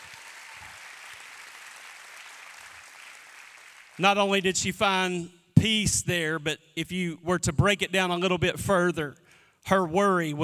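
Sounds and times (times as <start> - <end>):
audience clapping hands: 0.0 - 4.6
speech: 4.0 - 10.4.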